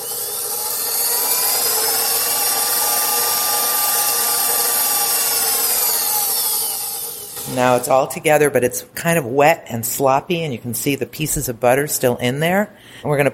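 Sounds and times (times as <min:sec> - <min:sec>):
stand mixer mixing pastry dough: 0:00.0 - 0:07.9
speech: 0:07.5 - 0:13.3.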